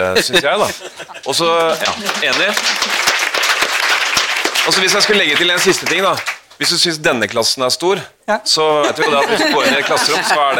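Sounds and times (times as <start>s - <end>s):
laughter: 0.0s - 2.9s, 8.6s - 10.5s
speech: 0.1s - 3.0s, 4.7s - 10.5s
audience applause: 1.2s - 6.8s.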